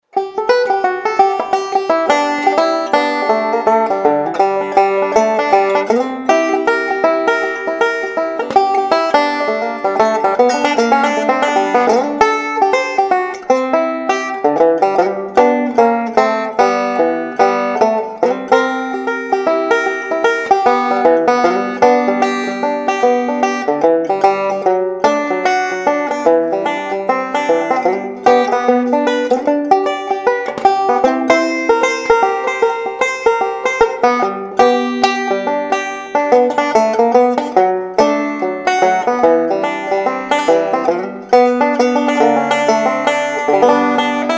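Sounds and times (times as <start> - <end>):
solo wandering banjo: 0.0 - 44.3.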